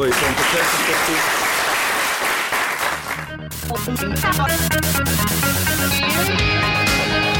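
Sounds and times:
speech: 0.0 - 1.4, 3.6 - 7.3
audience applause: 0.0 - 3.3.

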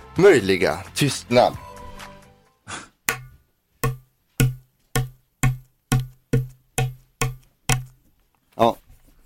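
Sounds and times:
speech: 0.2 - 1.6, 8.6 - 8.8
egg knocked against a tabletop and cracking: 3.0 - 8.0.

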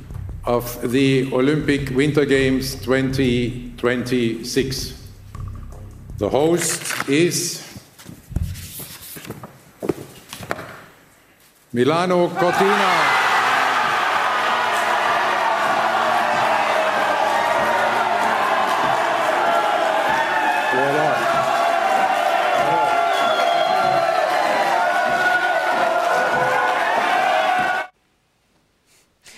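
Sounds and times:
speech: 0.4 - 5.0, 6.2 - 7.6, 11.8 - 13.2
delegation cheering at Olympic host announcement: 12.4 - 28.0.

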